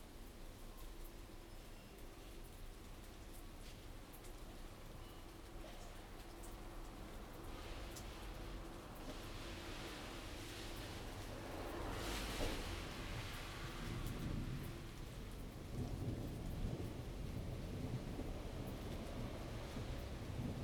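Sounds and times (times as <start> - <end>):
rain in the city: 0.0 - 20.6
thunder in the city: 12.0 - 20.6.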